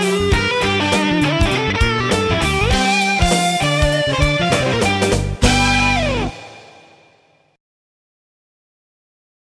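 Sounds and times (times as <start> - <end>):
blues style music: 0.0 - 7.4.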